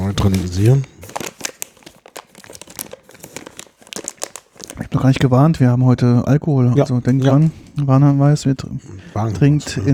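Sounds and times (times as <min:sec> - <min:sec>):
plastic snack mix bag crinkling: 0:00.0 - 0:05.5
speech: 0:00.1 - 0:00.9, 0:04.9 - 0:09.9.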